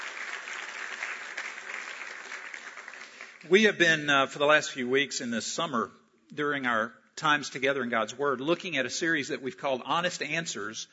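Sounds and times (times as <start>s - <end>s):
church congregation applauding: 0.0s - 4.0s
speech: 3.4s - 10.9s.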